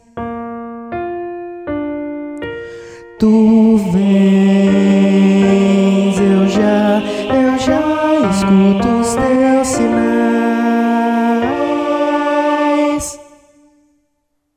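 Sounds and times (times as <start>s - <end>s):
baritone voice: 3.1s - 13.4s.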